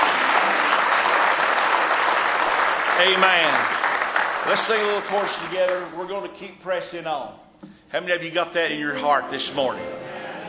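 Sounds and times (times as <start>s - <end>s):
audience applause: 0.0s - 6.0s
speech: 3.0s - 3.8s, 4.4s - 10.1s.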